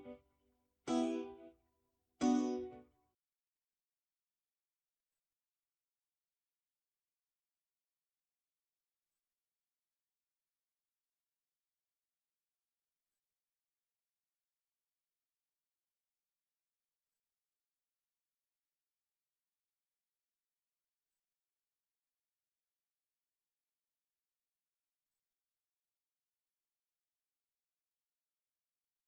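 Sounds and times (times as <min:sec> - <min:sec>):
piseiro version on keyboard: 0:00.9 - 0:01.4, 0:02.2 - 0:02.8.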